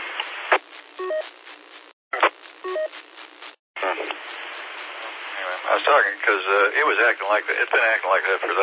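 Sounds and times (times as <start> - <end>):
radio static bursts from keyed transmitter: 0.0 - 8.6
speech: 5.9 - 8.6.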